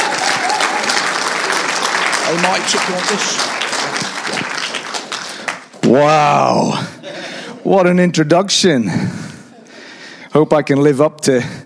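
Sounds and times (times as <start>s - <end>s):
audience applause welcoming a speaker at a Summer in the Psalms talk: 0.0s - 6.1s
speech: 2.3s - 4.0s, 5.9s - 6.9s, 7.6s - 9.3s, 10.3s - 11.6s.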